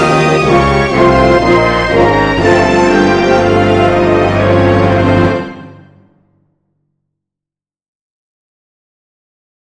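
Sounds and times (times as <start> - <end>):
battle music: 0.0 - 6.6.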